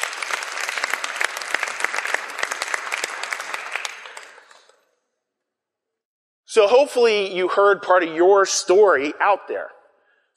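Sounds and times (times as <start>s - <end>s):
audience applause: 0.0s - 4.7s
speech: 6.6s - 9.8s.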